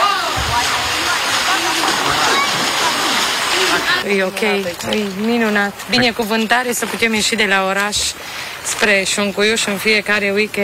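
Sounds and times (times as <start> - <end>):
faint voices murmuring: 0.0 - 6.2
cold river water rushing: 0.0 - 9.2
speech: 4.1 - 10.6.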